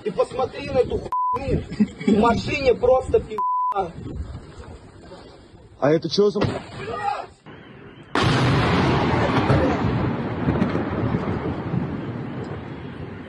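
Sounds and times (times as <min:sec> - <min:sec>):
laughter: 0:00.0 - 0:00.7, 0:01.4 - 0:02.6
speech: 0:00.0 - 0:04.4, 0:05.8 - 0:07.3
drone shot down crashing into house: 0:08.2 - 0:12.0.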